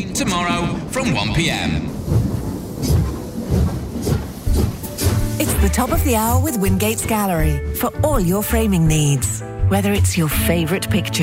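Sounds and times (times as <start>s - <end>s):
speech: 0.2s - 2.2s, 5.6s - 11.2s
train wheels clattering over rail joints: 0.7s - 9.4s.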